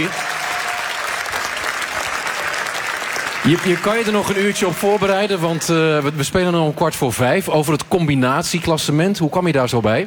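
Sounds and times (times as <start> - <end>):
speech: 0.0 - 0.2, 3.4 - 10.0
audience applause: 0.0 - 6.2.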